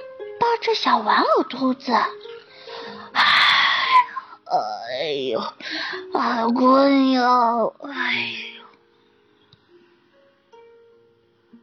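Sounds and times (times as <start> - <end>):
speech: 0.6 - 2.3, 4.5 - 8.5
person imitating a yawn: 3.2 - 4.2.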